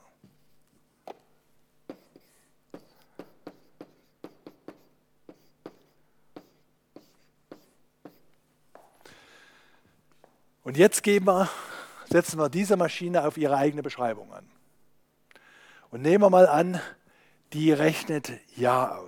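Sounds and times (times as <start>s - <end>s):
handwriting during a lecture: 1.9s - 8.4s
speech: 10.7s - 14.5s, 15.9s - 19.0s.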